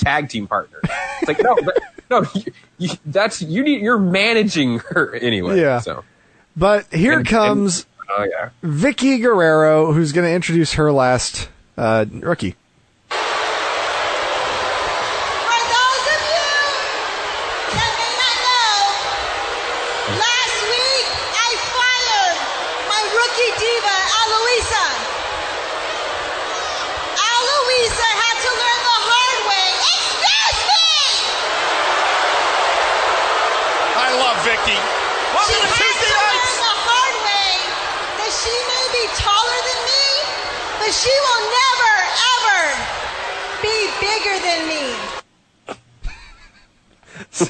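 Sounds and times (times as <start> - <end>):
speech: 0.0 - 12.6
laughter: 0.8 - 3.0, 46.0 - 47.4
wrestling arena crowd cheering, whooping and shouting: 13.1 - 45.3.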